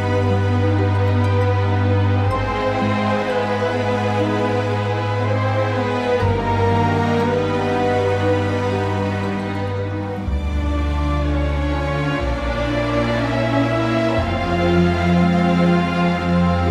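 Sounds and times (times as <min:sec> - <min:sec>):
music: 0:00.0 - 0:16.7.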